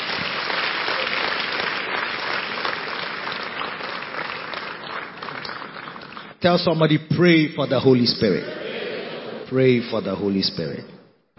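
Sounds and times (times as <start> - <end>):
audience clapping: 0.0 - 6.8
speech: 6.4 - 8.6, 9.5 - 11.0.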